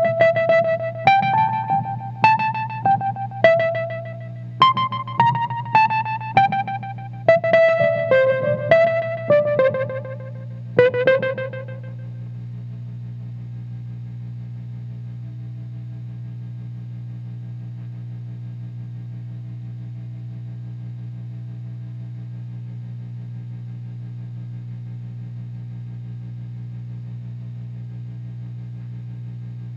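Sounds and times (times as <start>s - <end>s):
Wurlitzer: 0.0s - 12.0s.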